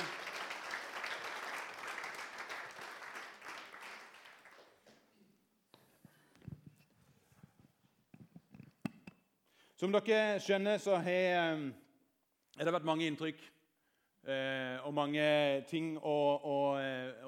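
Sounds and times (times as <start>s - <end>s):
crowd applauding: 0.0s - 5.1s
speech: 9.8s - 11.8s, 12.6s - 13.6s, 14.2s - 17.2s.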